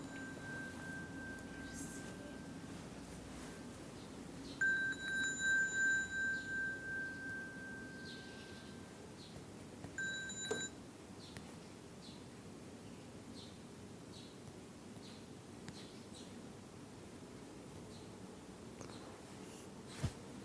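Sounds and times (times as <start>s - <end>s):
phone ringing with a repeating electronic beeping pattern: 0.0s - 3.5s, 4.5s - 9.0s, 9.9s - 10.8s
low steady hum: 0.0s - 20.4s.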